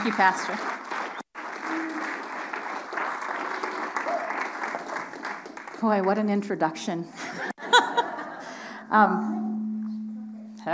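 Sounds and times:
speech: 0.0 - 0.8, 5.8 - 7.3, 8.9 - 9.5
church congregation applauding to welcome a speaker: 0.0 - 6.1
laughter: 7.2 - 8.6.

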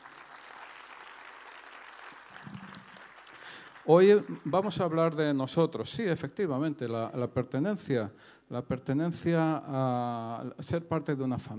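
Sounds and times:
audience applause: 0.0 - 5.2
speech: 3.9 - 11.5.

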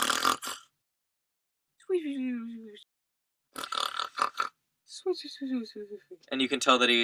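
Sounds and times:
voice imitating loud snoring: 0.0 - 0.8, 3.6 - 4.6
speech: 5.0 - 7.0.

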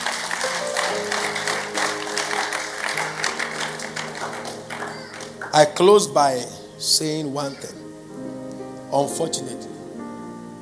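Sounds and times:
audience clapping hands: 0.0 - 6.1
sustained organ-like music: 0.0 - 10.6
speech: 5.6 - 7.8, 8.9 - 9.7.

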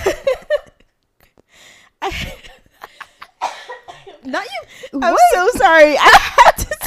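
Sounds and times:
person coughing: 3.4 - 4.3
speech: 4.3 - 6.3.

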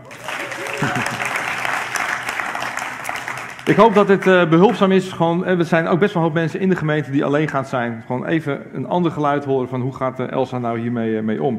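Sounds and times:
laughter: 0.0 - 3.0
applause: 0.0 - 4.9
speech: 0.8 - 1.3, 3.7 - 11.5.

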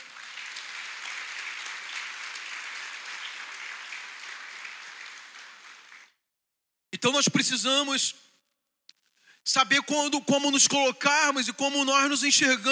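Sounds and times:
audience applauding: 0.0 - 6.2
speech: 7.0 - 8.3, 9.5 - 12.7.

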